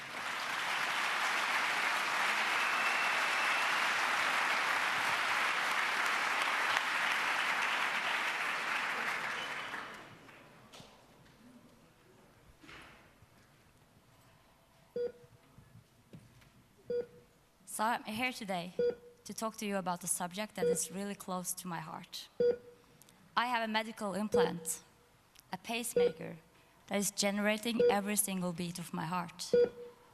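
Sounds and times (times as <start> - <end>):
audience applause: 0.0 - 10.4
speech: 17.8 - 22.6, 23.4 - 24.9, 25.6 - 29.8.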